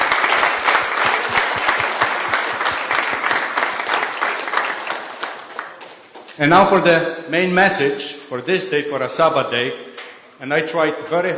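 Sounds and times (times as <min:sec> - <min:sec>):
audience applause at a Sabbath day service: 0:00.0 - 0:06.4
speech: 0:06.4 - 0:11.3.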